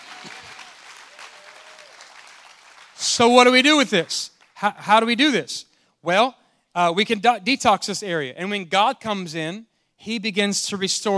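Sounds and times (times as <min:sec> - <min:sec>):
audience clapping hands: 0:00.0 - 0:04.7
speech: 0:03.2 - 0:11.1.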